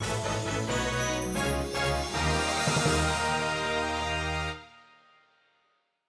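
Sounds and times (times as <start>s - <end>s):
minigame result jingle: 0.0s - 3.8s.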